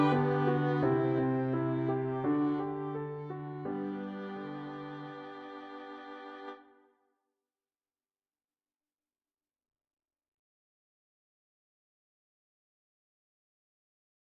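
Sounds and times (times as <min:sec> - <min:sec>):
musical accompaniment: 0:00.0 - 0:06.6.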